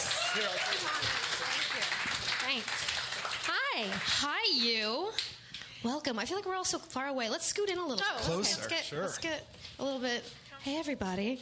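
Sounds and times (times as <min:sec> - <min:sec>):
audience applause at a live event: 0:00.0 - 0:04.4
speech: 0:00.4 - 0:11.4.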